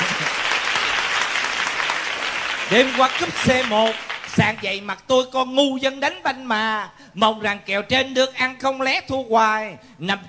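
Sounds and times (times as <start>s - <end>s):
crowd applause: 0.0s - 4.6s
speech: 2.7s - 10.2s.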